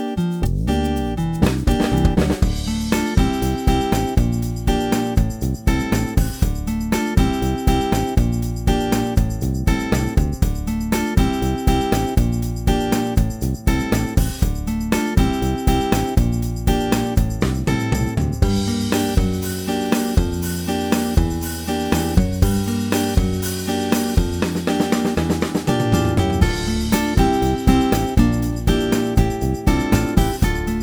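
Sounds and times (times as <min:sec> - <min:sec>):
acoustic guitar strumming Latin pop: 0:00.0 - 0:30.8.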